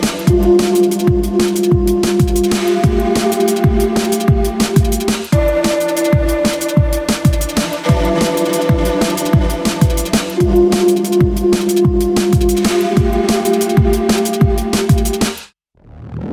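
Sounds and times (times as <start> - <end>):
chill-out drum and bass music: 0.0 - 15.6.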